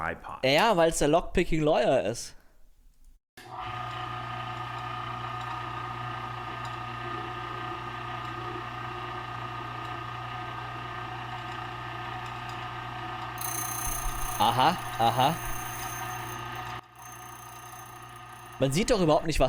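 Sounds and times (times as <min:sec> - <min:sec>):
speech: 0:00.0 - 0:02.4, 0:14.4 - 0:15.5, 0:18.6 - 0:19.4
key cutting machine cutting a KW1 key blank: 0:13.3 - 0:19.3.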